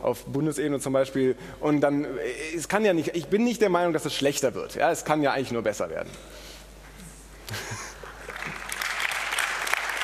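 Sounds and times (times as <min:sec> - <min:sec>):
speech: 0:00.0 - 0:06.5, 0:07.5 - 0:07.9
audience applause: 0:08.1 - 0:10.0.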